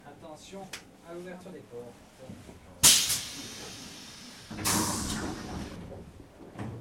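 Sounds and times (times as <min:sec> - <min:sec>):
train door opening: 0:02.8 - 0:06.8.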